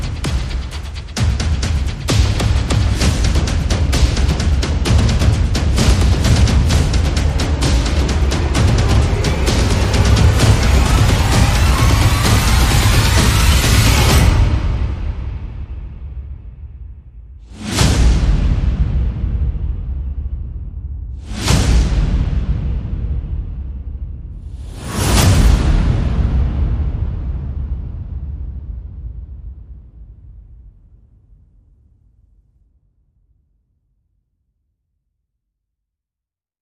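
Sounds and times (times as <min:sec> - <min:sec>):
percussion: 0:00.0 - 0:29.9
sound effects: 0:05.7 - 0:16.0.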